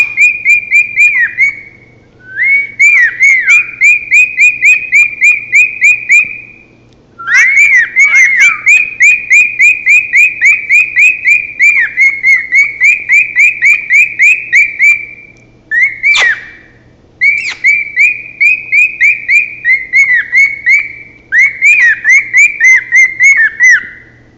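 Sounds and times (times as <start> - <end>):
male cockatiel whistling: 0.0 - 24.1.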